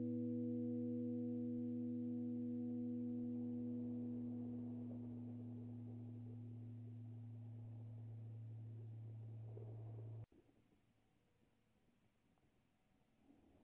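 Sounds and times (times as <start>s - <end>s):
high aeolian tone: 0.0s - 10.3s.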